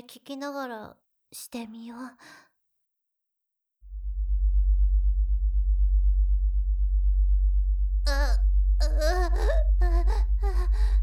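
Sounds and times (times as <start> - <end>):
speech: 0.1 - 2.5, 8.0 - 10.7
low-frequency induction tone audio: 3.8 - 11.0.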